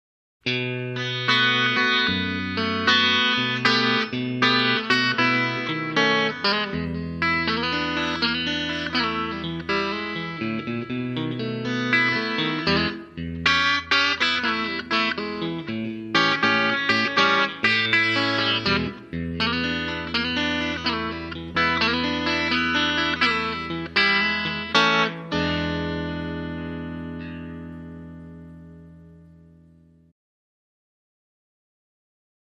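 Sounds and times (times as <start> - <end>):
electric guitar slow blues: 0.4 - 30.1.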